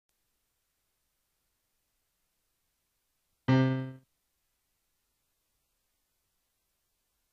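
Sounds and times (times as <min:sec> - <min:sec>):
piano: 0:03.5 - 0:04.0.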